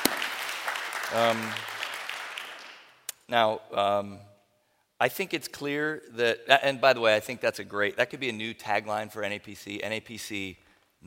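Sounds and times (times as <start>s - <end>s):
audience applause: 0.0s - 2.9s
speech: 1.1s - 1.7s, 3.3s - 4.3s, 5.0s - 11.0s.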